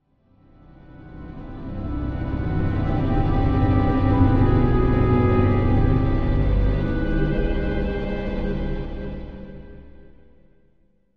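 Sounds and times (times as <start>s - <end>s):
eerie orchestral music: 0.6s - 10.3s.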